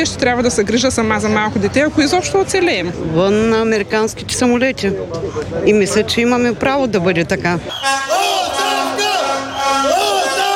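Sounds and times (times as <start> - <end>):
speech: 0.0 - 8.6
protest crowd chanting a slogan in unison: 7.7 - 10.5.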